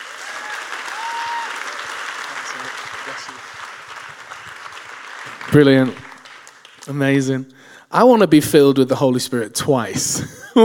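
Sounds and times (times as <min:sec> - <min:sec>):
scattered voices and cheers: 0:00.0 - 0:06.7
audience applause at a Christian ministry gathering: 0:00.0 - 0:07.0
speech: 0:05.5 - 0:06.0, 0:06.9 - 0:10.6.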